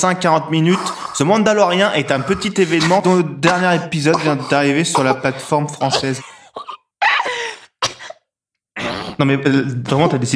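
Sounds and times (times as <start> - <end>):
speech: 0.0 - 6.7, 9.2 - 10.3
laughter: 2.0 - 6.4
person coughing after choking on breath: 2.0 - 8.2.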